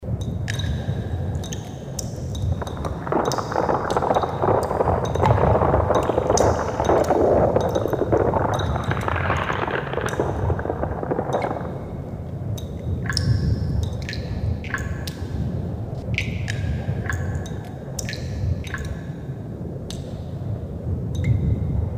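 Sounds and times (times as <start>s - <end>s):
cave ambience: 0.0s - 21.9s.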